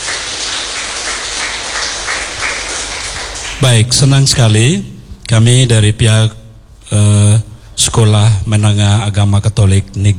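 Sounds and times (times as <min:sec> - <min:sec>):
audience clapping: 0:00.0 - 0:04.2
speech: 0:03.6 - 0:10.1.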